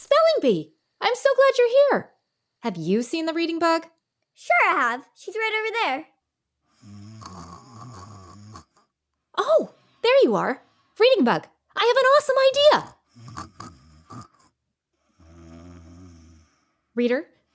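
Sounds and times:
speech: 0:00.0 - 0:06.1, 0:09.4 - 0:13.4, 0:17.0 - 0:17.4
cartoon character snoring while asleep: 0:06.7 - 0:08.9, 0:12.7 - 0:16.6.

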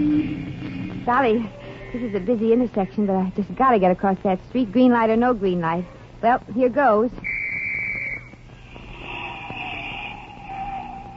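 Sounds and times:
speech: 0:00.0 - 0:07.3
police whistle blown: 0:07.2 - 0:08.4.

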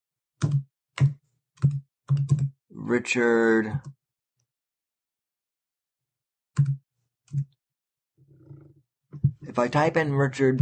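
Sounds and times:
heavy keystrokes on a computer keyboard: 0:00.4 - 0:02.5
speech: 0:00.4 - 0:04.0, 0:06.6 - 0:07.5, 0:09.4 - 0:10.5.

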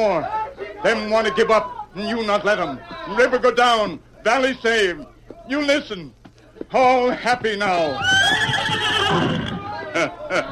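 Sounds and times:
speech: 0:00.0 - 0:09.3, 0:10.0 - 0:10.5
laughter: 0:07.0 - 0:10.5
horse neighing: 0:08.0 - 0:09.9.

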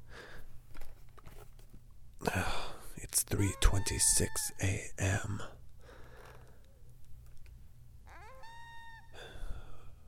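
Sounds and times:
speech: 0:03.2 - 0:05.6
coyotes howling in the woods at night: 0:03.4 - 0:04.5, 0:08.1 - 0:09.4.

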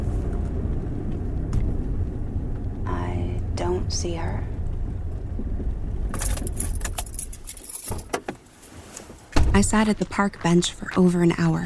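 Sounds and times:
car engine and road rumble driving up to a park: 0:00.0 - 0:11.6
speech: 0:03.9 - 0:04.5, 0:09.6 - 0:11.6.

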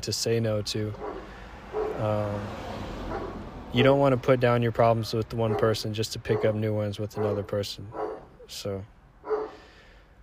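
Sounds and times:
speech: 0:00.0 - 0:01.1, 0:02.0 - 0:02.6, 0:03.7 - 0:08.9
dog bark: 0:01.0 - 0:02.0, 0:03.1 - 0:04.0, 0:05.4 - 0:08.4, 0:09.2 - 0:09.6.

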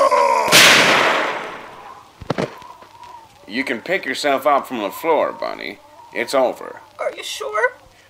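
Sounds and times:
gunshot blast from a gun with freshly adjusted sights: 0:00.5 - 0:02.5
speech: 0:03.5 - 0:07.7.

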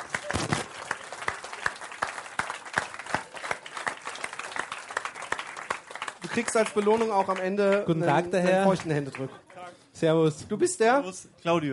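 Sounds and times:
audience applause: 0:00.0 - 0:09.6
speech: 0:06.4 - 0:09.4, 0:10.0 - 0:11.7.

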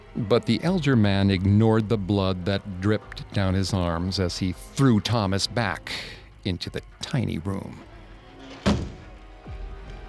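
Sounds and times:
speech: 0:00.2 - 0:07.9
door shutting with heavy thud: 0:08.4 - 0:09.2.

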